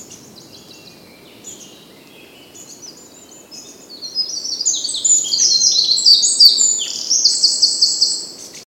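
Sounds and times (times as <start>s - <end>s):
Eurasian wren singing: 0.0s - 8.6s.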